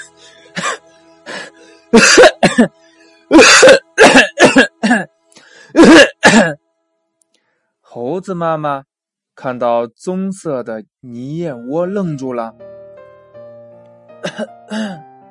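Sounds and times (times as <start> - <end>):
harsh raspy coughs: 0.0 - 0.8, 2.0 - 2.7, 3.3 - 6.6, 14.2 - 15.0
speech: 1.9 - 3.8, 8.2 - 12.7, 14.3 - 15.1.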